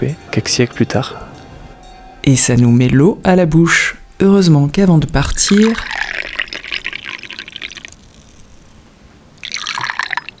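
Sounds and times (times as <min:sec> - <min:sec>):
speech: 0:00.0 - 0:01.3, 0:02.3 - 0:06.0
broth made by a restaurant cook being poured: 0:04.1 - 0:10.3.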